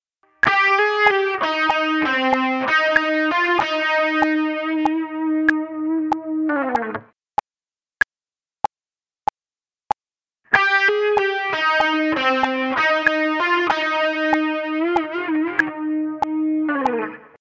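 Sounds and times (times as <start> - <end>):
vibrato tone: 0.4 - 7.0, 10.5 - 17.2.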